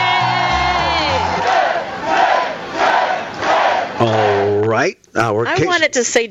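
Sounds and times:
cheering crowd sound effect shouting yay: 0.0 - 4.6
speech: 4.0 - 6.3.

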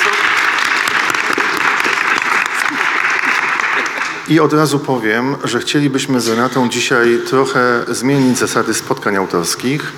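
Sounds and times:
audience applause: 0.0 - 4.3
speech: 4.3 - 9.9.

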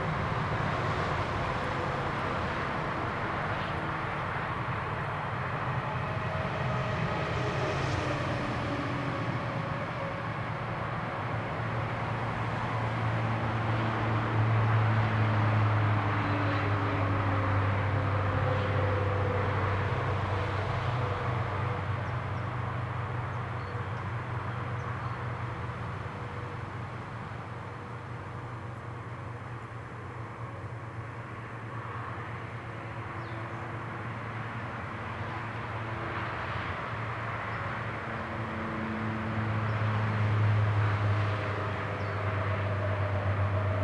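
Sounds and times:
cars passing along a road: 0.0 - 43.8.

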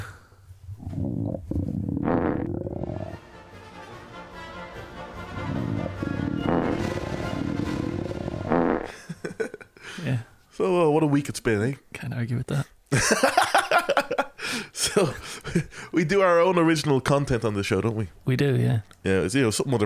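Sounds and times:
stomach rumbling heard through microphone: 0.0 - 3.2, 5.3 - 8.9
laughter: 8.9 - 9.8, 12.9 - 15.7
speech: 10.1 - 19.8.

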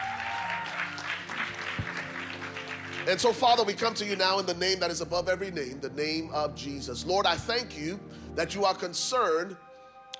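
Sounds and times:
audience applause: 0.0 - 3.8
speech: 3.1 - 9.7.

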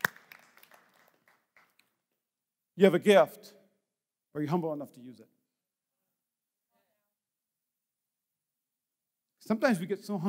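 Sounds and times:
audience clapping: 0.0 - 2.1
speech: 2.8 - 3.6, 4.4 - 5.4, 9.5 - 10.2.

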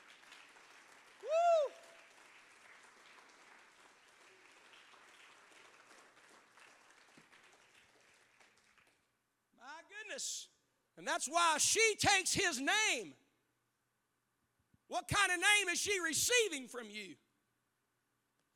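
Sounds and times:
crowd clapping: 0.0 - 9.2
person whooping: 1.2 - 2.0
speech: 10.0 - 13.2, 14.9 - 17.2.

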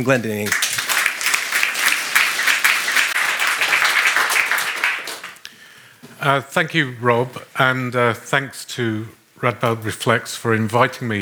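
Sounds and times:
speech: 0.0 - 0.7, 6.2 - 11.2
audience applause: 0.4 - 5.4.

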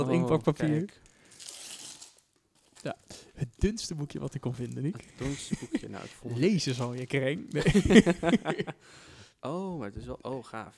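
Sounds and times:
speech: 0.0 - 1.1, 2.8 - 10.7
gift wrapping paper tearing: 0.9 - 7.6
laughter: 5.0 - 6.6, 7.4 - 8.8.

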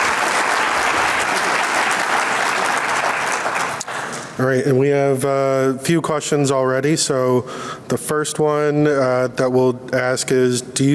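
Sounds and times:
audience applause at a panel event: 0.0 - 4.4
speech: 4.4 - 10.9.

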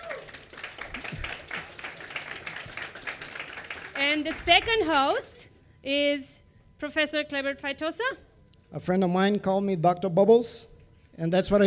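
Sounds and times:
crowd applauding: 0.0 - 4.7
speech: 4.1 - 11.6.

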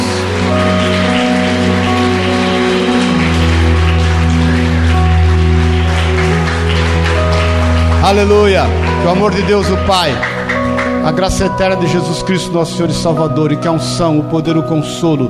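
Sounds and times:
audience applause: 0.0 - 11.7
sustained keyboard chords: 0.0 - 15.2
speech: 8.1 - 10.4, 11.0 - 15.2.

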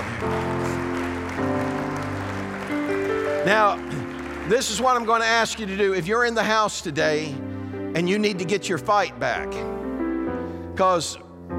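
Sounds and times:
audience applause: 0.0 - 6.6
sustained keyboard or organ chords: 0.0 - 11.5
speech: 3.4 - 9.8, 10.8 - 11.5.

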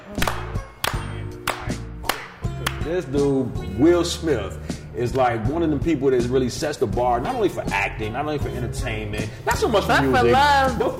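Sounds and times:
slow clap: 0.1 - 2.9
speech: 2.9 - 10.9.

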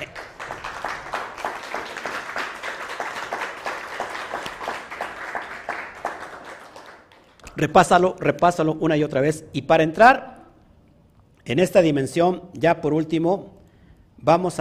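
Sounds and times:
audience applause: 0.0 - 7.4
speech: 7.6 - 10.3, 11.4 - 13.6, 14.2 - 14.5.

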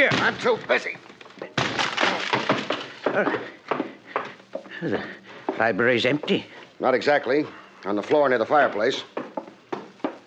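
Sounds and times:
wooden library door being battered and broken open: 0.0 - 0.5, 1.6 - 3.2
speech: 0.3 - 1.1, 3.2 - 3.5, 4.8 - 9.1
wood cracking and splintering: 1.6 - 2.8.

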